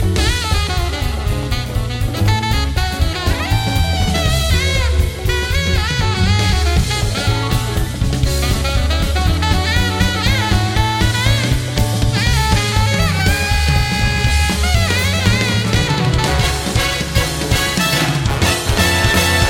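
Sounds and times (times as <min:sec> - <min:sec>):
jazz music: 0:00.0 - 0:19.4.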